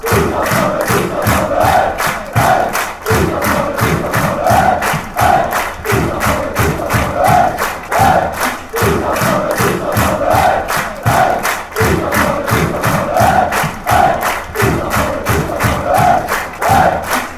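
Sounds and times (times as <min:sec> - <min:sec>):
fans chanting together: 0:00.0 - 0:17.3.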